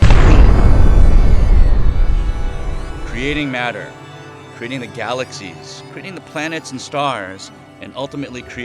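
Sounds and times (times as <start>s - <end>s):
deep explosion sound effect standing for the Big Bang: 0.0s - 3.4s
speech: 3.2s - 4.0s, 4.6s - 8.6s.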